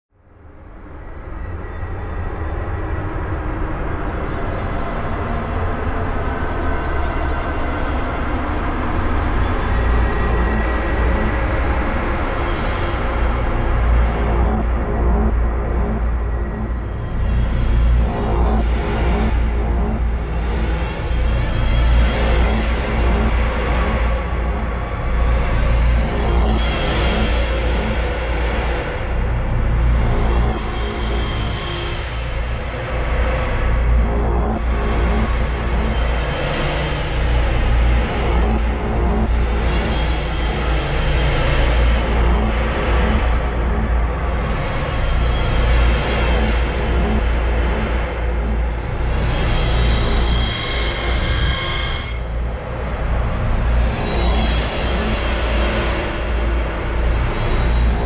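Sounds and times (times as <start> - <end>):
ambient combat music: 1.7 - 58.0.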